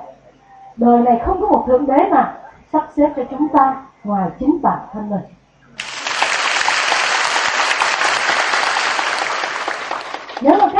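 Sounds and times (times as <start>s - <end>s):
speech: 0.8s - 5.4s, 10.4s - 10.7s
audience applause at a talk: 5.8s - 10.7s.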